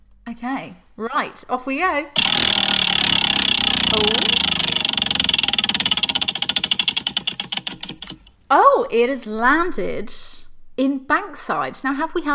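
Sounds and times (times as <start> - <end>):
speech: 0.4 - 5.3, 8.5 - 12.3
spinning wheel pointer clicking while picking a random area: 2.2 - 8.3.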